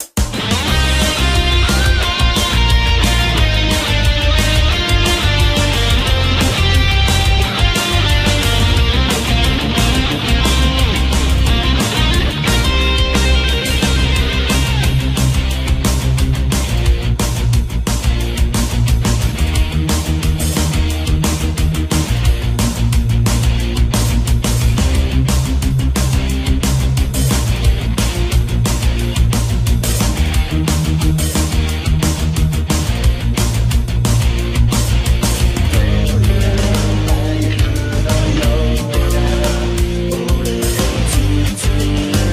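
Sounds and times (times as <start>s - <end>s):
instrumental music: 0.0s - 42.3s.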